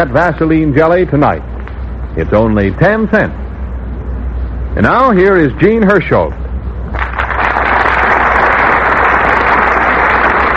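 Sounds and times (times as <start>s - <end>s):
speech: 0.0s - 1.5s, 2.2s - 3.4s, 4.8s - 7.1s
radio studio audience applause for a Hollywood star: 6.9s - 10.5s.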